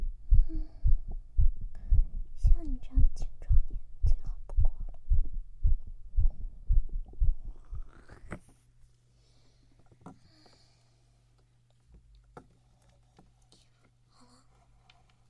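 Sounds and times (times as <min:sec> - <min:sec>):
fast strong heartbeat: 0:00.0 - 0:07.9.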